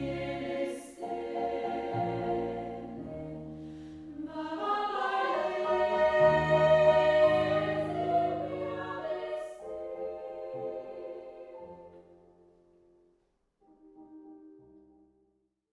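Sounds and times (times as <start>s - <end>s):
female choir singing: 0.0s - 3.5s, 4.1s - 12.0s.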